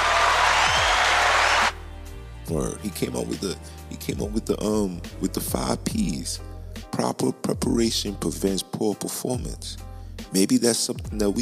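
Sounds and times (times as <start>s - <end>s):
audience applause: 0.0s - 1.8s
speech: 2.5s - 11.4s.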